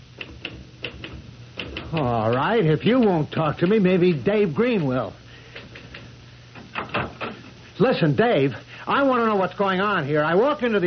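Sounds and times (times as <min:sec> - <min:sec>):
low steady hum: 0:00.0 - 0:10.8
typewriter keystrokes: 0:00.2 - 0:03.8
speech: 0:01.9 - 0:05.2, 0:07.8 - 0:10.8.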